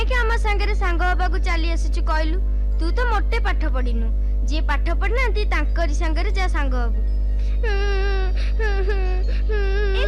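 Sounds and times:
low steady hum: 0:00.0 - 0:10.0
speech: 0:00.5 - 0:10.0
small child crying: 0:07.6 - 0:10.0.

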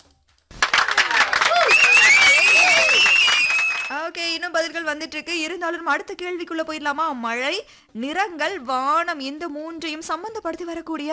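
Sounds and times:
applause: 0:00.5 - 0:04.0
speech: 0:04.7 - 0:11.1.

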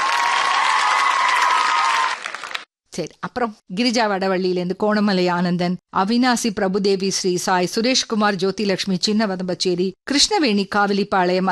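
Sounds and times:
crowd cheering: 0:00.0 - 0:02.7
dense loud audience applause: 0:00.0 - 0:02.7
speech: 0:03.0 - 0:11.5.

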